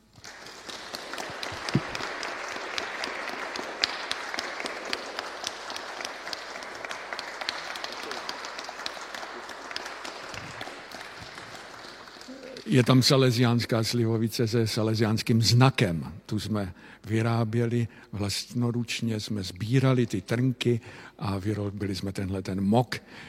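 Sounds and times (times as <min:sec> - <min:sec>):
audience applause: 0:00.0 - 0:13.3
speech: 0:12.7 - 0:23.2.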